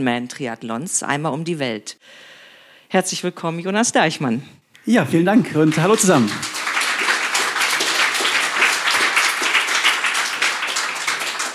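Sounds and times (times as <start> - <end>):
speech: 0.0 - 2.3, 2.9 - 6.5
live festival audience applause: 5.5 - 11.5.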